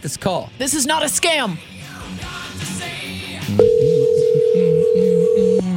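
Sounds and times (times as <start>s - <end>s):
speech: 0.0s - 3.8s
telephone dial tone after hang-up: 3.6s - 5.6s.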